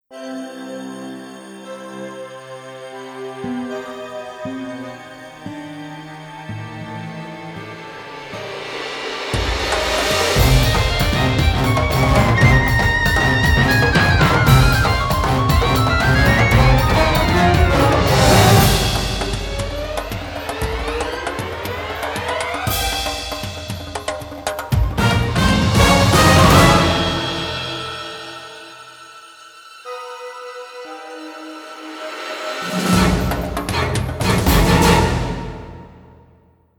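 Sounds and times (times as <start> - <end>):
alluring lullaby music: 0.1 - 23.8, 25.0 - 35.2.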